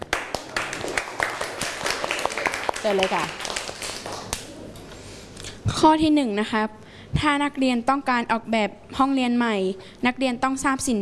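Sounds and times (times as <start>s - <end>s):
students clapping in a classroom: 0.0s - 4.5s
speech: 2.8s - 3.4s, 5.7s - 11.0s.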